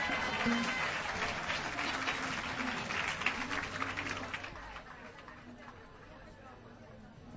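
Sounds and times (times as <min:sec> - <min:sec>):
audience applause: 0:00.0 - 0:05.8.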